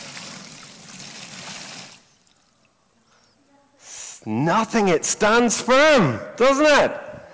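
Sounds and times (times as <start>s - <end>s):
water poured over a model house as a flood: 0.0s - 2.7s
speech: 4.2s - 7.1s.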